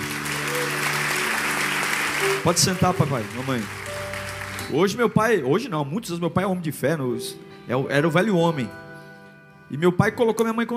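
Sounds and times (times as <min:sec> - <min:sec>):
round of applause from a crowd: 0:00.0 - 0:04.8
speech: 0:02.3 - 0:03.9, 0:04.7 - 0:08.8, 0:09.7 - 0:10.7.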